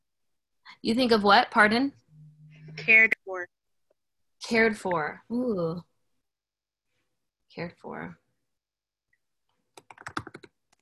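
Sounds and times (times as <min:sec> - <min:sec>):
speech: 0:00.8 - 0:02.0, 0:02.8 - 0:03.6, 0:04.4 - 0:05.9, 0:07.6 - 0:08.2
typing on a computer keyboard: 0:09.8 - 0:10.7.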